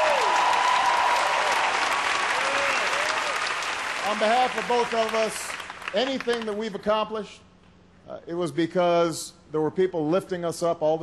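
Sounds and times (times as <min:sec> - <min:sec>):
round of applause: 0:00.0 - 0:06.6
speech: 0:04.1 - 0:07.5, 0:08.1 - 0:11.0.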